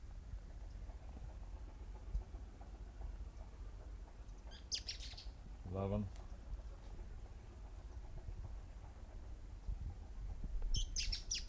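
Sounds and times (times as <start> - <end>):
low steady rumble: 0.0 - 11.4
several birds calling while chasing each other: 0.6 - 8.2, 10.7 - 11.4
speech: 5.7 - 6.2.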